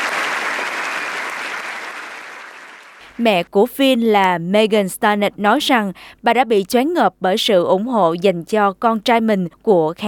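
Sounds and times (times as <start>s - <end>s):
audience applause: 0.0s - 3.0s
speech: 3.2s - 10.0s.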